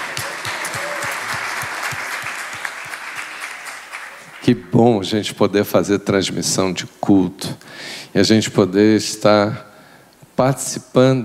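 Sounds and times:
audience applause: 0:00.0 - 0:04.5
speech: 0:04.4 - 0:09.7, 0:10.4 - 0:11.2.

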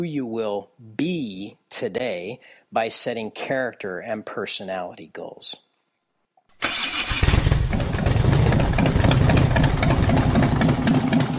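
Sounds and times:
speech: 0:00.0 - 0:05.7
Harley Davidson Screamin' Eagle convertible CVO motorcycle engine starting and idling: 0:06.6 - 0:11.3.

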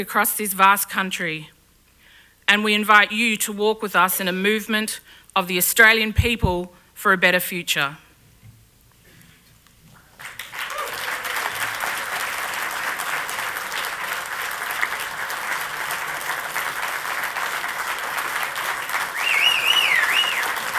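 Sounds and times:
speech: 0:00.0 - 0:01.6, 0:02.5 - 0:08.0
crowd applause: 0:10.0 - 0:20.7.

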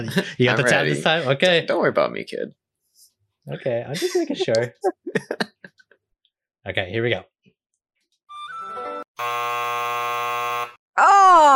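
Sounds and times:
laughter: 0:00.0 - 0:01.7, 0:03.5 - 0:05.7
speech: 0:00.0 - 0:02.6, 0:03.4 - 0:05.5, 0:06.6 - 0:07.3
quiz buzzer: 0:09.1 - 0:10.8.

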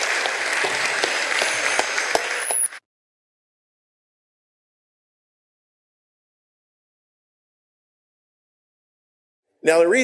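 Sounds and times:
round of applause: 0:00.0 - 0:02.9.

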